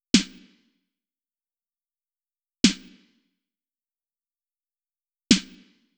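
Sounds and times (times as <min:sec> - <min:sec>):
snare drum patterns: 0:05.3 - 0:05.6.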